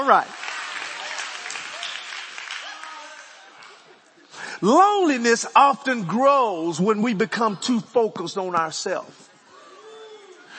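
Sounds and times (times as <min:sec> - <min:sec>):
speech: 0:00.0 - 0:00.4, 0:04.6 - 0:09.3
audience clapping: 0:00.0 - 0:04.1.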